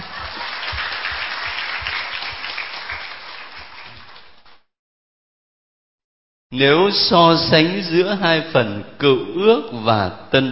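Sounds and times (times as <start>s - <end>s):
audience at a Catholic Bible class clapping: 0.0s - 4.7s
speech: 6.5s - 10.5s.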